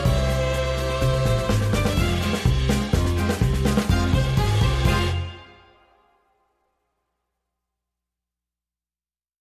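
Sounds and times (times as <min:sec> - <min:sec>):
klezmer music: 0:00.0 - 0:06.3.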